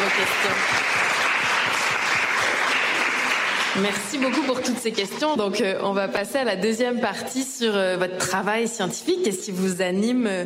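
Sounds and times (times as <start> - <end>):
audience applause after a question session of a talk with women scientists: 0.0 - 5.1
speech: 0.2 - 1.1, 3.8 - 10.4.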